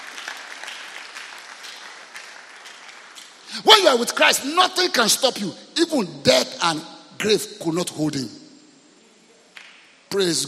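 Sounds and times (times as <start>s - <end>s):
church congregation clapping during a sermon: 0.0s - 5.1s
speech: 3.5s - 8.4s, 10.1s - 10.4s.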